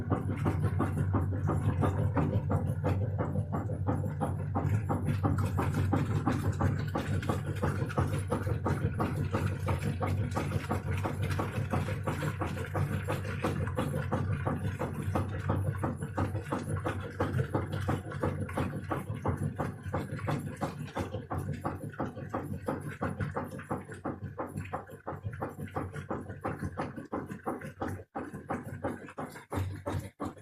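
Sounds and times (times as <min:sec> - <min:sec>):
washing machine: 0:00.0 - 0:30.4.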